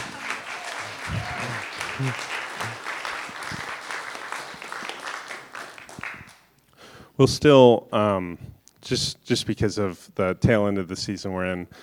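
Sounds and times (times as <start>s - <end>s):
crowd applause: 0.0s - 6.5s
speech: 2.0s - 2.4s, 7.2s - 11.8s.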